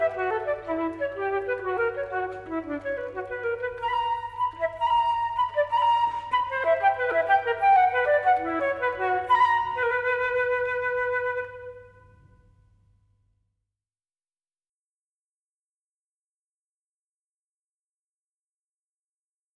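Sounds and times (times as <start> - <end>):
solo flute: 0.0 - 12.4.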